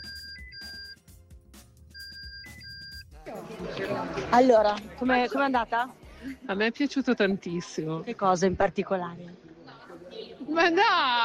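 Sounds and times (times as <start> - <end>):
phone ringtone from a film: 0.0 - 1.1, 1.9 - 3.1
busy steady noise: 0.0 - 11.2
speech: 3.3 - 9.4, 10.5 - 11.2.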